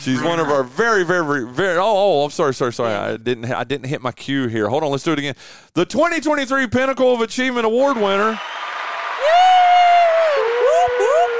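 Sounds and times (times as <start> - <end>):
speech: 0.0 - 8.6
crowd cheering: 7.8 - 11.3
person whooping: 9.2 - 11.3.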